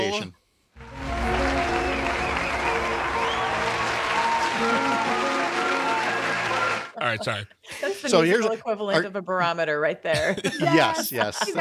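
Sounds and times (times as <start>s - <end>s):
canned applause sound effect: 0.8s - 7.2s
faint cheering: 0.9s - 7.0s
laughter: 2.4s - 8.4s, 10.1s - 11.5s
speech: 7.1s - 11.5s.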